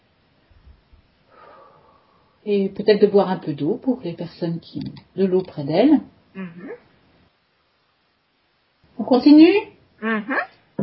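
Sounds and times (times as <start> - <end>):
faint deep breath: 1.2 - 2.4
speech: 2.4 - 6.8, 9.1 - 10.8.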